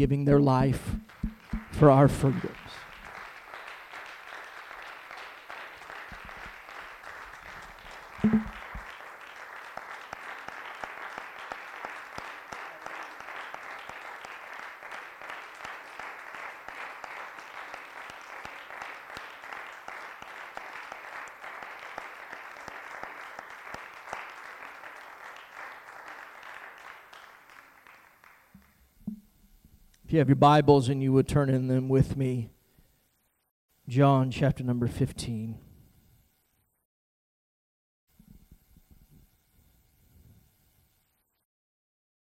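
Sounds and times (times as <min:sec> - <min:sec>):
speech: 0:00.0 - 0:01.2, 0:01.8 - 0:02.8, 0:30.2 - 0:32.6, 0:33.9 - 0:35.7
audience applause: 0:01.1 - 0:28.5.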